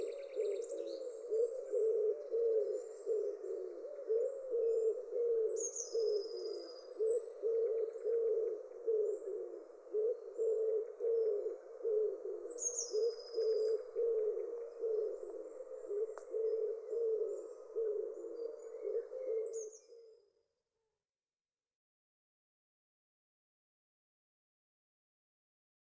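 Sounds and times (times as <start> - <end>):
common wood pigeon cooing: 0.0 - 20.2.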